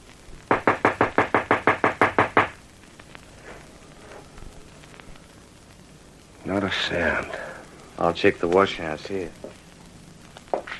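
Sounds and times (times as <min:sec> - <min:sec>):
knocking on a back door: 0:00.5 - 0:02.6
speech: 0:06.7 - 0:07.4, 0:08.0 - 0:09.6.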